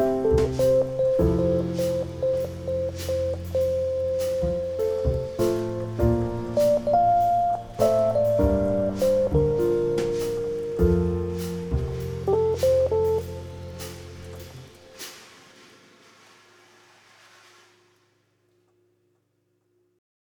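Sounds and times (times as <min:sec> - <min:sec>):
bossa nova music: 0:00.0 - 0:15.3.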